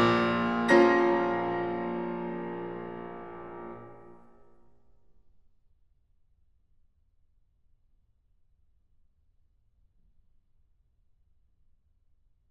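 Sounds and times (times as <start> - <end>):
piano sonata: 0.0 - 4.3.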